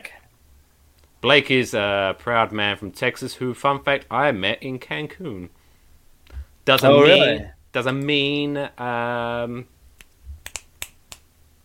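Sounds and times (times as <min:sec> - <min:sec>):
speech: 0:01.2 - 0:05.6, 0:06.6 - 0:09.8
person singing wordless tones: 0:06.8 - 0:07.5
finger snaps and claps: 0:10.0 - 0:11.3.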